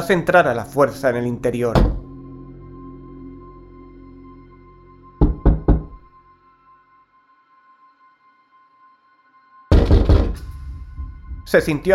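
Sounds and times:
speech: 0:00.0 - 0:02.0, 0:11.5 - 0:11.9
fist knocking on a kitchen window: 0:05.2 - 0:06.0, 0:09.7 - 0:10.4.

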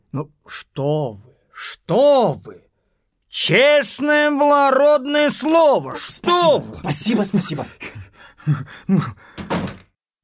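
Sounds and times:
speech: 0:00.1 - 0:02.7, 0:03.3 - 0:09.6
door being opened in a dramatized Bulgakov play: 0:09.3 - 0:10.0.

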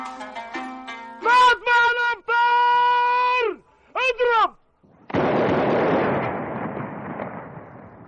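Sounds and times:
man reciting the Quran in drawn-out melodic phrases: 0:01.2 - 0:04.6
Ramadan iftar cannon firing at sunset: 0:05.0 - 0:08.0.

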